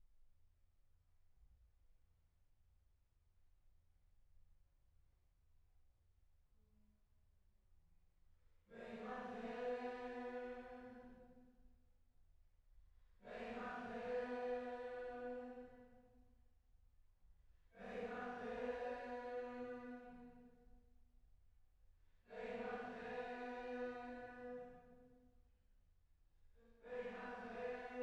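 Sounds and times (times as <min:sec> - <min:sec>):
choir singing: 0:08.7 - 0:11.4, 0:13.2 - 0:16.0, 0:17.8 - 0:20.6, 0:22.3 - 0:25.0, 0:26.7 - 0:28.0.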